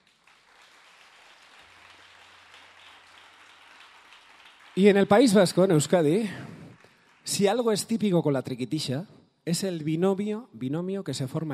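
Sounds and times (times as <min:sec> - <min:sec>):
audience applause: 0:00.0 - 0:07.8
speech: 0:04.8 - 0:06.5, 0:07.2 - 0:11.5.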